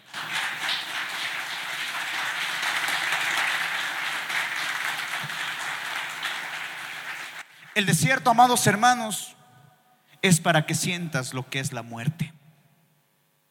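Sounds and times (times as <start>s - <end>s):
audience applause: 0.0s - 7.9s
speech: 7.8s - 9.4s, 10.2s - 12.4s.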